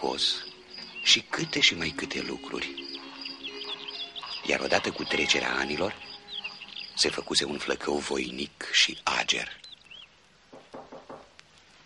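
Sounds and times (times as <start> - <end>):
speech: 0.0 - 2.9, 4.5 - 6.0, 7.0 - 9.7
knocking on a door: 10.5 - 11.3.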